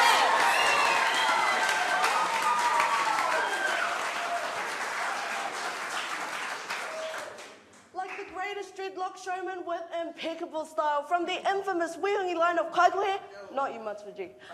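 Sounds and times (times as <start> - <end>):
audience applause: 0.0 - 8.2
speech: 9.2 - 14.5.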